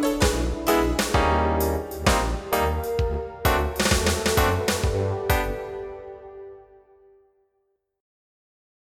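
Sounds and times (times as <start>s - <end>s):
reggae music: 0.0s - 6.3s.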